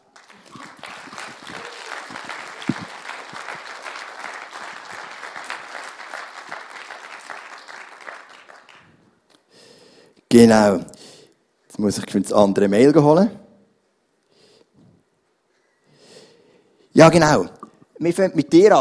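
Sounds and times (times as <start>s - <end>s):
audience applause: 0.0s - 9.0s
faint voices and whoops: 0.3s - 3.1s
speech: 10.3s - 10.9s, 11.8s - 13.4s, 17.0s - 18.7s.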